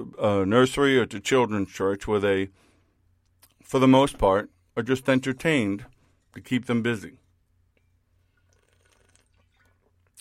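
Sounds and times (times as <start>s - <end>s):
speech: 0.1s - 2.7s, 3.6s - 7.2s
person drinking water: 8.2s - 10.1s.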